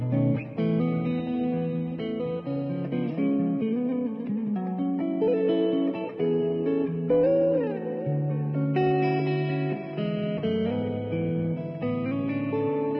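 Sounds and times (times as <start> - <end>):
electric guitar: 0.0 - 12.9.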